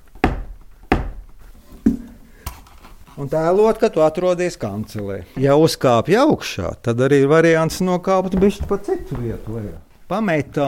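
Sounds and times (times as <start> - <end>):
heavy footsteps climbing wooden stairs: 0.0 - 2.2, 7.6 - 9.8
speech: 3.2 - 10.6.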